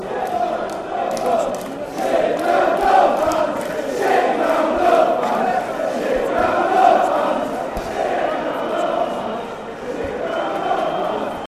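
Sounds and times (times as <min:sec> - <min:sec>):
chanting: 0:00.0 - 0:11.4.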